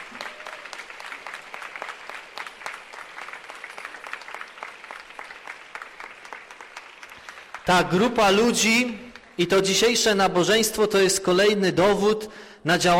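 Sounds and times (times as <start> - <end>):
audience applause: 0.0 - 8.0
speech: 7.7 - 12.9.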